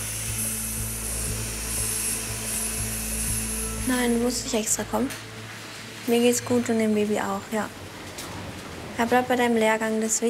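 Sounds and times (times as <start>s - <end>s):
surgical drill whirring: 0.0s - 4.3s
speech: 3.9s - 5.3s, 6.1s - 7.9s, 9.0s - 10.2s.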